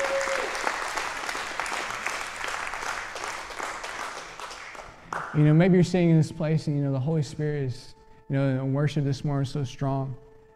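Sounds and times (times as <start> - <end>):
audience applauding: 0.0 - 5.6
speech: 5.3 - 10.2.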